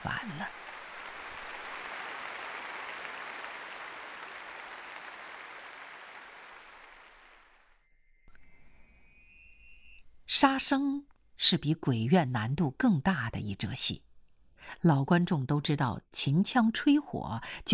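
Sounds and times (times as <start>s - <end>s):
thunderous applause from a large theater audience: 0.0s - 7.6s
speech: 10.4s - 17.7s.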